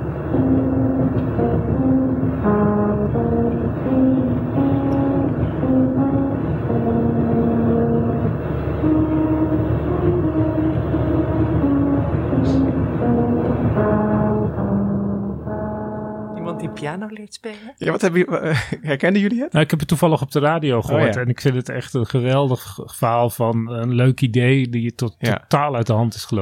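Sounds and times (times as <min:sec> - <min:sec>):
car playing an anthem over musical rumble strips: 0:00.0 - 0:16.3
speech: 0:16.8 - 0:26.3
laughter: 0:18.4 - 0:19.0.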